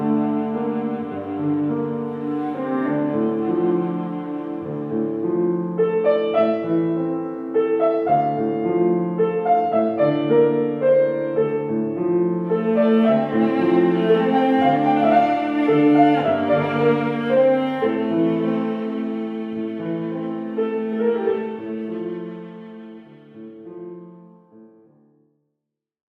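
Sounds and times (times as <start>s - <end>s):
viola: 0.0s - 24.4s
piano: 0.0s - 25.3s.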